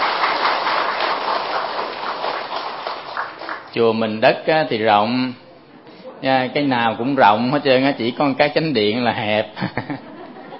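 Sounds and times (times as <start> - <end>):
audience applause: 0.0 - 3.7
speech: 3.8 - 5.4, 6.2 - 10.1
laughter: 9.6 - 10.5.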